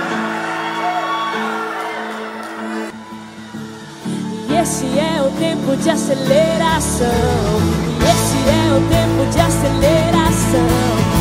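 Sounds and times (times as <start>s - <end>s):
crowd shouting and whooping: 0.0s - 5.3s
speech: 4.6s - 11.0s.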